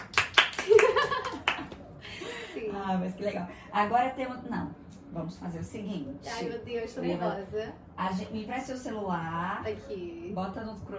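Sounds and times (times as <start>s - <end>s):
hand clapping: 0.0s - 1.9s
speech: 2.9s - 10.9s.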